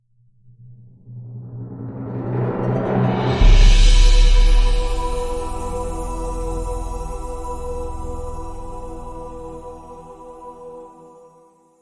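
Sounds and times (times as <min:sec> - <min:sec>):
magical music sting: 0:02.2 - 0:10.8.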